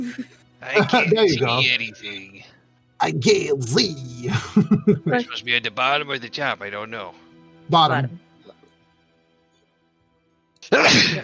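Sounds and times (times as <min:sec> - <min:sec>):
laughter: 0:00.0 - 0:02.2, 0:03.1 - 0:05.6
speech: 0:00.0 - 0:08.2, 0:10.6 - 0:11.2
sneeze: 0:10.7 - 0:11.2.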